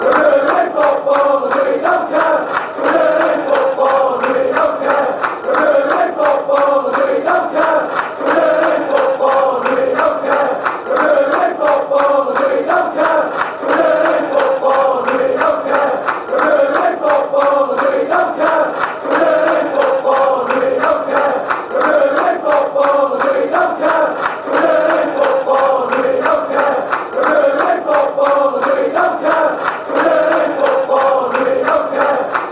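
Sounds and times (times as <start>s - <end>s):
football fans chanting: 0.0s - 32.5s.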